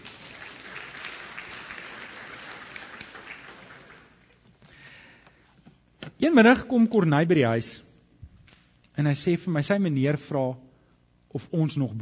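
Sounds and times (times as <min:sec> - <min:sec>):
audience applause: 0:00.0 - 0:04.4
speech: 0:06.2 - 0:07.9, 0:09.0 - 0:10.6, 0:11.3 - 0:12.0.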